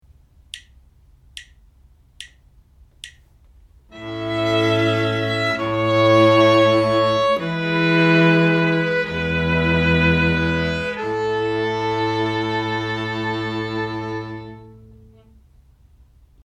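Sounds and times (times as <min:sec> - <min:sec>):
string quartet playing: 0:03.9 - 0:15.4.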